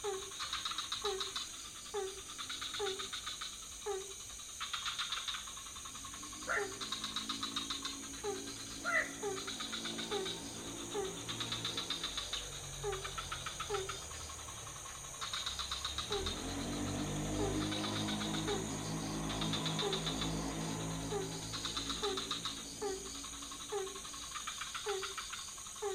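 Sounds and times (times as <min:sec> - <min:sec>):
frogs croaking: 0:00.0 - 0:25.9
steady insect whine: 0:00.0 - 0:25.9
motorbike engine rumbling past: 0:05.9 - 0:25.1.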